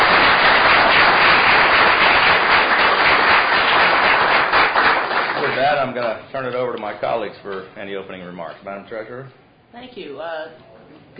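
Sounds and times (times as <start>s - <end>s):
audience applause: 0.0s - 5.9s
speech: 6.1s - 11.1s.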